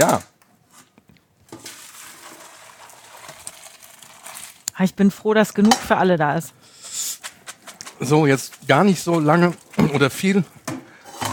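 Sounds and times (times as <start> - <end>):
speech: 0.0 - 0.3, 4.8 - 6.6, 8.0 - 10.7
boiled pasta water being drained: 1.4 - 4.8, 7.7 - 10.5.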